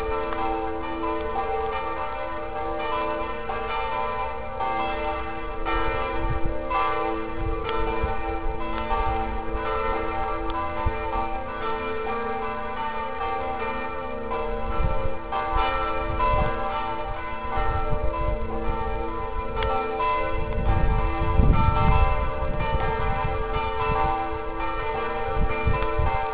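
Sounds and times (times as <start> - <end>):
bells: 0.0 - 26.3.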